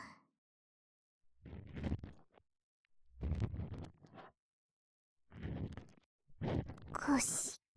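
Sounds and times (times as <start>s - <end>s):
cotton swab ASMR in the right ear: 1.4s - 2.2s, 3.2s - 4.3s, 5.3s - 7.4s.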